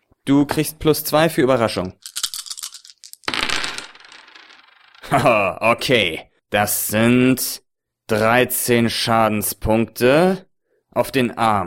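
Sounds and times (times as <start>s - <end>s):
speech: 0.3s - 2.1s, 5.1s - 11.6s
dice rattling: 2.0s - 5.1s.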